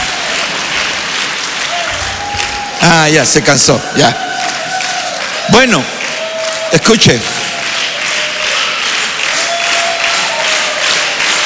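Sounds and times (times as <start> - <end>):
applause: 0.0 - 11.4
speech: 2.8 - 4.5, 5.5 - 6.0, 6.7 - 7.4.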